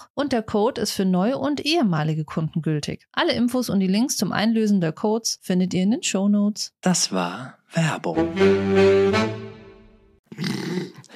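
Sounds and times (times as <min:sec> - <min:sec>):
speech: 0:00.2 - 0:09.6, 0:10.4 - 0:11.1
suppressed internal burp: 0:10.3 - 0:11.1.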